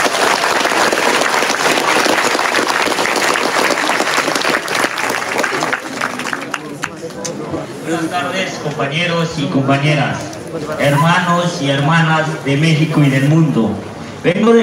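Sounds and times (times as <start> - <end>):
audience applause: 0.0 - 7.2
speech: 7.9 - 14.6.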